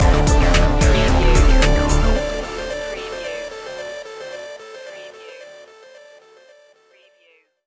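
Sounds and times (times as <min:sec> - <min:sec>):
future technologies music stinger: 0:00.0 - 0:04.0.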